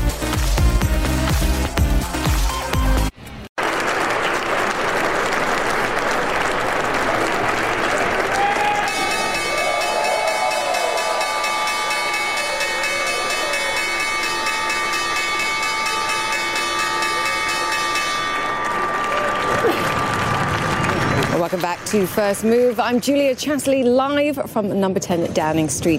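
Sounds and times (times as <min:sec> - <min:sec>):
crowd cheering and shouting at Wall Street stock exchange opening: 0:00.1 - 0:03.1, 0:06.9 - 0:15.2, 0:17.0 - 0:21.4
applause at stock exchange opening: 0:00.4 - 0:03.0, 0:03.6 - 0:12.5, 0:18.3 - 0:23.8
Wall Street opening bell ringing: 0:08.9 - 0:20.4
speech: 0:21.9 - 0:25.9.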